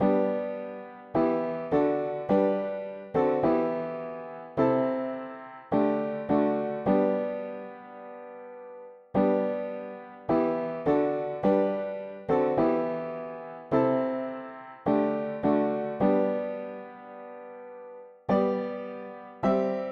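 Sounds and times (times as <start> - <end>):
mono piano: 0.0 - 19.9.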